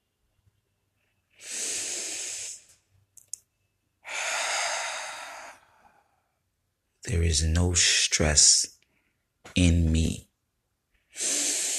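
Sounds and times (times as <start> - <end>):
slow deliberate breathing: 1.2 - 2.9, 4.0 - 6.4, 11.0 - 11.7
speech: 7.1 - 8.7, 9.6 - 10.2.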